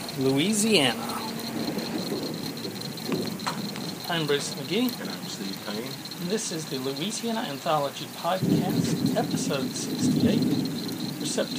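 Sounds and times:
rain on a porch in Louisiana: 0.0 - 11.5
speech: 0.2 - 1.7, 4.1 - 11.5.

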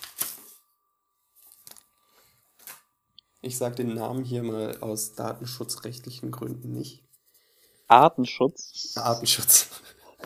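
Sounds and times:
paper from an opened letter crinkling and rustling: 0.0 - 0.6
speech: 3.4 - 7.1, 7.9 - 9.9.

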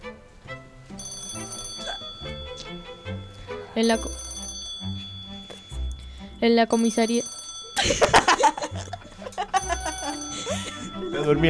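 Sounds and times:
telephone ringing: 1.0 - 11.4
speech: 3.8 - 4.2, 6.4 - 8.9, 11.1 - 11.4
laughter: 7.8 - 11.4.

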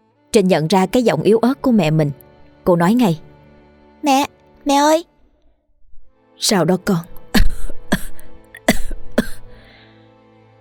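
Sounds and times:
speech: 0.4 - 3.3, 4.0 - 5.1, 6.4 - 7.1
woman coughing: 7.2 - 9.7.

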